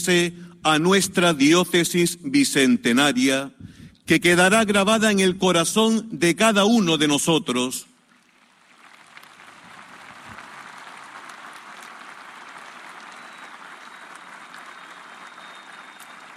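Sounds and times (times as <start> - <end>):
speech: 0.0 - 7.9
audience applause for the bishop: 8.4 - 16.3.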